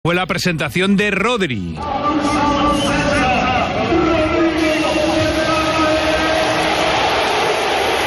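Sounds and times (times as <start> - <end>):
speech: 0.0 - 2.5
stadium crowd giving a sustained ovation: 1.8 - 8.0.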